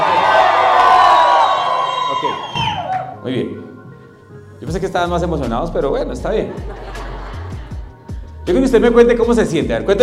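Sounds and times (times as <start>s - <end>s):
crowd shouting and cheering: 0.0s - 3.2s
speech: 4.7s - 6.8s, 8.5s - 10.0s
laughter: 6.4s - 8.0s.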